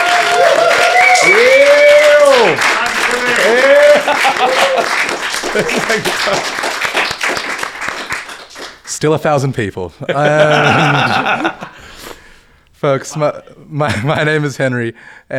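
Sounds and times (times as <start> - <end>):
audience whooping and cheering: 0.0 - 8.6
live audience applause at an evening conversation event: 0.0 - 9.1, 10.1 - 11.8
laughter: 1.2 - 8.6, 9.9 - 12.2, 13.0 - 15.0
speech: 5.6 - 6.7, 9.0 - 11.8, 12.8 - 15.3.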